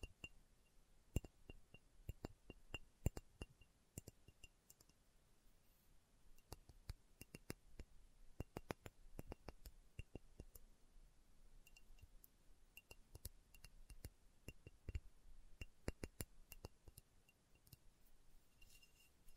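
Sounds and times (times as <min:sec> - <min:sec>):
slow ASMR tapping with fingertip or nail on glass: 0:00.0 - 0:04.9, 0:06.4 - 0:10.6, 0:11.6 - 0:17.8
soft steady low hiss: 0:00.0 - 0:19.3.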